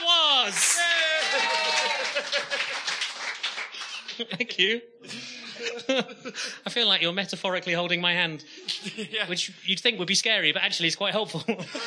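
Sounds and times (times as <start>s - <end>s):
applause: 0.0s - 4.2s
voices cheering and whooping: 0.1s - 2.8s
laughter: 0.8s - 6.8s, 8.6s - 9.4s, 11.3s - 11.8s
speech: 4.2s - 11.8s.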